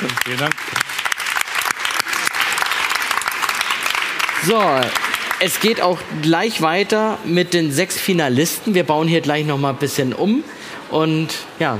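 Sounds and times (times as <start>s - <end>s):
audience applause: 0.0s - 5.8s
speech: 0.3s - 0.7s, 4.4s - 11.7s.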